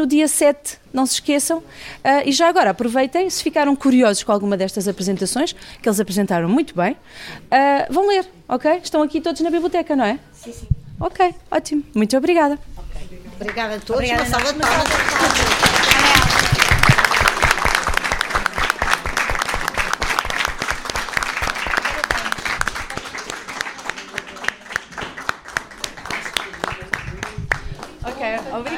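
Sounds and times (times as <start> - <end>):
speech: 0.0 - 12.8, 13.4 - 15.5
audience applause: 14.1 - 28.7.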